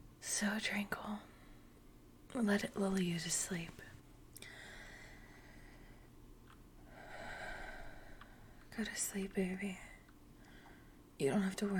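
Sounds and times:
speech: 0:00.3 - 0:01.4, 0:02.3 - 0:04.0, 0:08.8 - 0:09.9, 0:11.2 - 0:11.7
slow calm breathing: 0:04.4 - 0:06.2, 0:06.8 - 0:08.7, 0:09.8 - 0:11.1.

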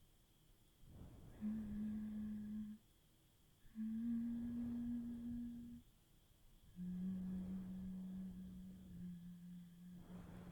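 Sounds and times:
person humming: 0:01.3 - 0:02.8, 0:03.6 - 0:05.8, 0:06.7 - 0:10.3.

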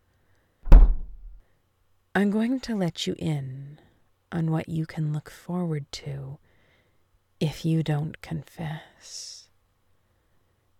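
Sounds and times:
door closing: 0:00.7 - 0:01.4
speech: 0:02.2 - 0:06.4, 0:07.4 - 0:09.4.

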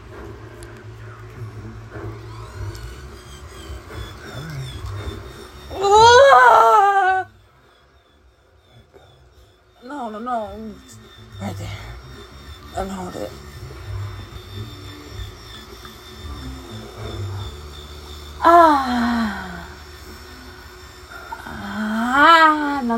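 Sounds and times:
person moaning: 0:05.7 - 0:07.3, 0:18.4 - 0:19.8, 0:21.3 - 0:22.8
person screaming: 0:05.7 - 0:07.3.

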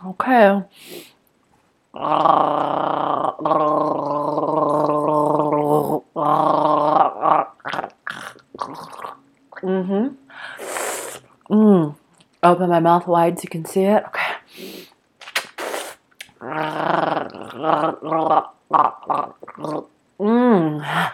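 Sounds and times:
speech: 0:00.1 - 0:01.0, 0:02.0 - 0:04.0, 0:12.5 - 0:14.6, 0:17.7 - 0:18.5
person gargling: 0:01.9 - 0:09.8, 0:16.2 - 0:21.1.

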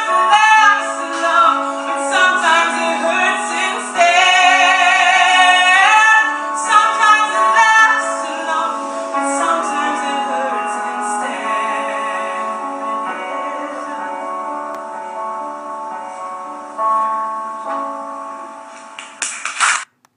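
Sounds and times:
woman belting a cover song at an open mic: 0:00.0 - 0:14.7
piano: 0:00.0 - 0:19.9.

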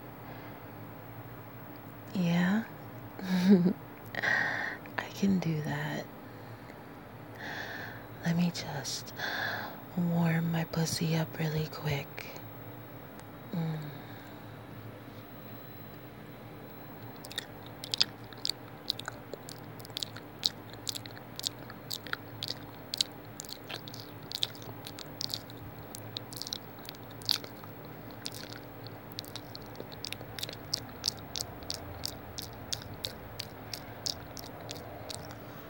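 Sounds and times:
faint steady hum: 0:00.0 - 0:35.6
speech: 0:02.1 - 0:02.8, 0:03.5 - 0:03.8, 0:05.2 - 0:06.1, 0:08.3 - 0:12.4
wet squishing: 0:17.1 - 0:35.6.

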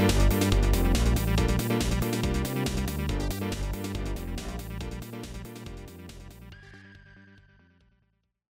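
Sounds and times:
disco music: 0:00.0 - 0:06.5.

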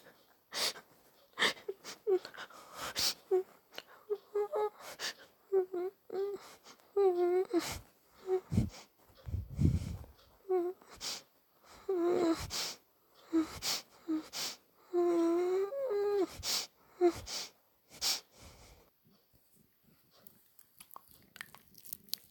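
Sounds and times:
person breathing heavily, quiet and nervous: 0:00.5 - 0:05.4, 0:06.2 - 0:18.9.

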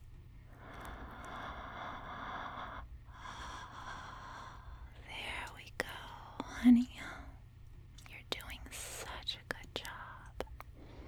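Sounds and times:
low constant hum: 0:00.0 - 0:11.0
shallow breathing: 0:00.6 - 0:05.1, 0:10.8 - 0:11.0
speech: 0:06.6 - 0:07.1.

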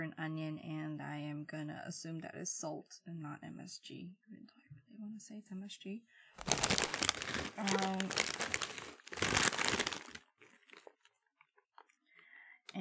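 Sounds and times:
speech: 0:00.1 - 0:04.4, 0:05.0 - 0:10.0
potato chip bag crinkling: 0:06.4 - 0:11.1.

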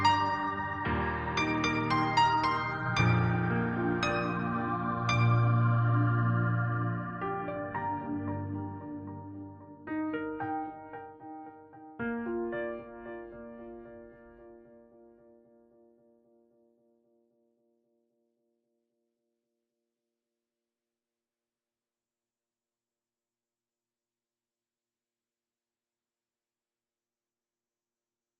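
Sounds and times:
piano: 0:00.0 - 0:18.0.

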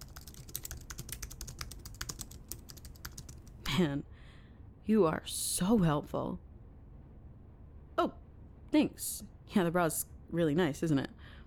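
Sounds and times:
keyboard typing a note: 0:00.0 - 0:03.6
speech: 0:03.8 - 0:04.1, 0:04.8 - 0:06.5, 0:08.0 - 0:11.2.

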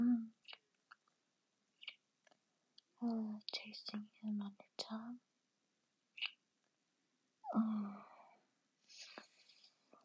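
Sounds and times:
kissing lip smacks: 0:00.4 - 0:01.0, 0:01.8 - 0:02.0, 0:06.2 - 0:06.4
speech: 0:03.0 - 0:05.3.

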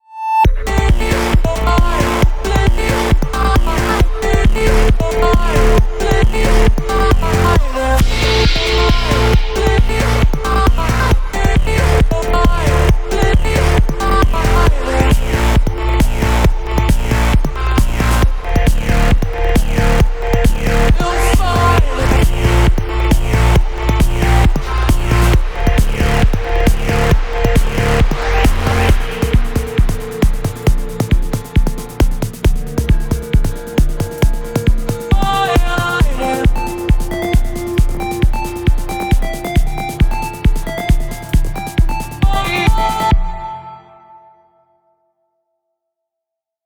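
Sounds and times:
shutdown sound: 0:00.7 - 0:43.0.

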